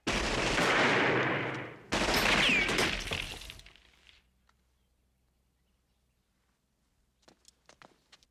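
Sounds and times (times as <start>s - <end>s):
rapid gunfire bursts: 0.0s - 3.1s
glass shattering: 2.0s - 3.8s.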